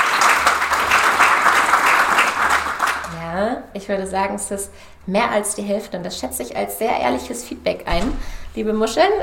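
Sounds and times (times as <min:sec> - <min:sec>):
audience clapping: 0:00.0 - 0:03.2
speech: 0:03.8 - 0:09.2.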